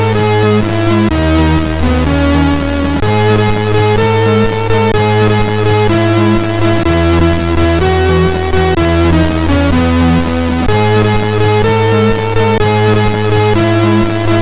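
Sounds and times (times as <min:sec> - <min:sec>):
tune on MOS6581R2 sound chip: 0:00.0 - 0:14.4.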